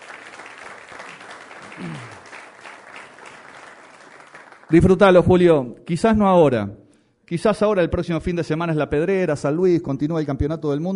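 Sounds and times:
crowd applauding: 0.0 - 5.2
falling vocal cry: 1.6 - 2.3
speech: 1.8 - 2.2, 4.7 - 10.9.

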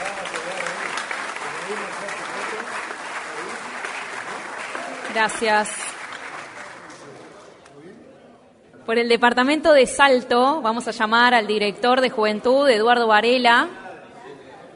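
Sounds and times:
audience applause: 0.0 - 7.5
speech: 1.7 - 2.8, 5.2 - 5.9, 8.9 - 13.8.

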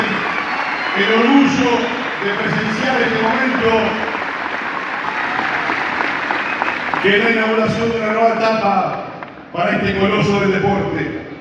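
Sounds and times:
crowd applause at the inauguration of a sports venue in Paysandú: 0.0 - 8.1
speech: 1.0 - 4.1, 7.0 - 11.2.

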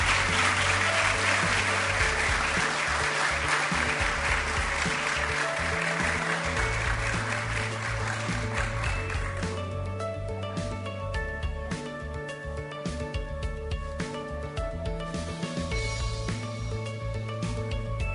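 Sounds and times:
crowd applauding: 0.0 - 9.6
low sustained musical tones: 0.0 - 18.1.

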